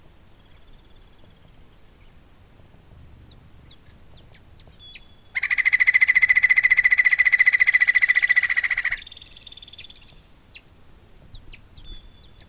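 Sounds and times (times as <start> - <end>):
Andean flicker Colaptes rupicola trilling call: 2.6 - 12.4.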